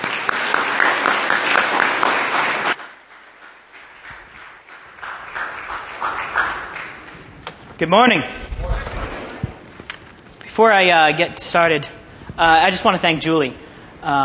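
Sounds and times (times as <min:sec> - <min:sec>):
church congregation applauding to welcome a speaker: 0:00.0 - 0:07.3
speech: 0:07.8 - 0:08.4, 0:10.6 - 0:14.2.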